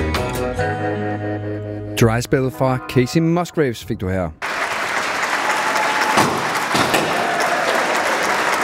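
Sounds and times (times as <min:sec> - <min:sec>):
speech: 0:00.5 - 0:04.5
loud applause: 0:04.4 - 0:08.6.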